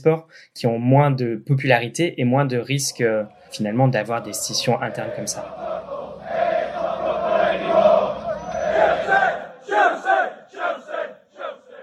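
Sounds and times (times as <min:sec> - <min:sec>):
speech: 0:00.0 - 0:06.0
large crowd of football supporters roaring in protest: 0:02.9 - 0:11.8.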